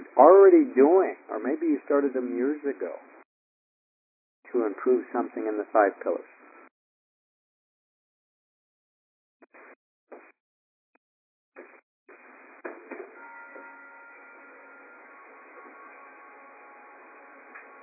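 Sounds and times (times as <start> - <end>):
speech: 0.2 - 3.1, 4.5 - 6.4
bell chime from an unmuted line: 13.2 - 17.8.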